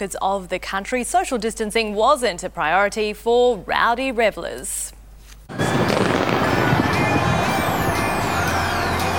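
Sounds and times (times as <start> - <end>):
speech: 0.0 - 6.1
Sydney fireworks display exploding: 5.5 - 8.6.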